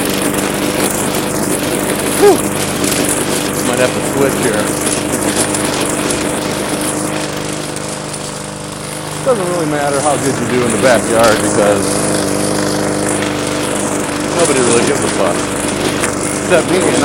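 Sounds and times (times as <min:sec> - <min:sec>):
lawn mower engine running: 0:00.0 - 0:17.0
speech: 0:03.8 - 0:05.0, 0:09.3 - 0:12.2, 0:14.4 - 0:17.0.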